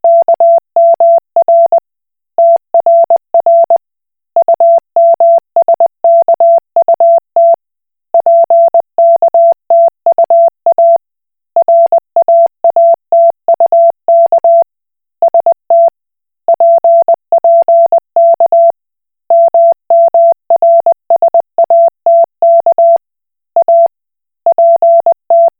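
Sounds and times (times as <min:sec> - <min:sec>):
Koch method Morse code beeps: 0:00.0 - 0:01.8, 0:02.4 - 0:03.8, 0:04.4 - 0:07.6, 0:08.2 - 0:11.0, 0:11.6 - 0:14.6, 0:15.2 - 0:15.9, 0:16.5 - 0:18.7, 0:19.3 - 0:23.0, 0:23.6 - 0:23.9, 0:24.5 - 0:25.5.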